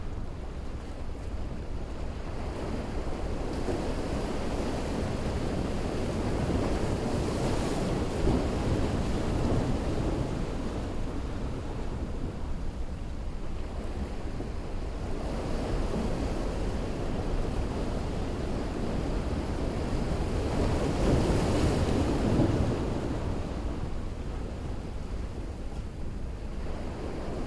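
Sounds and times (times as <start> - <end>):
waves at a jetty: 0.0 - 27.4.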